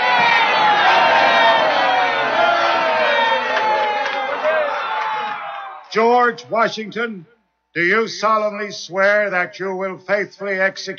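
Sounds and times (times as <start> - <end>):
whoops: 0.0 - 5.9
huge crowd cheering and shouting in a square: 0.0 - 6.1
speech: 6.0 - 10.9.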